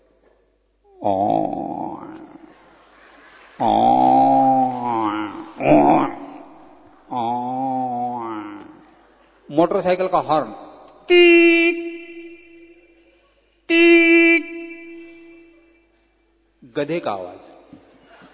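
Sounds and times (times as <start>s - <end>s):
human voice imitating a buffalo: 0.9s - 2.5s, 3.6s - 8.9s, 11.1s - 12.6s, 13.7s - 15.5s
speech: 1.0s - 1.6s, 3.6s - 3.9s, 9.6s - 11.5s, 16.8s - 17.8s.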